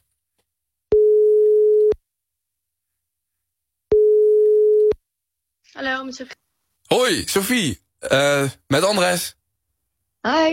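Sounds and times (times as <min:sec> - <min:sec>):
telephone ringback tone on an outgoing call: 0:00.9 - 0:01.9, 0:03.9 - 0:04.9
speech: 0:05.8 - 0:09.4, 0:10.2 - 0:10.5.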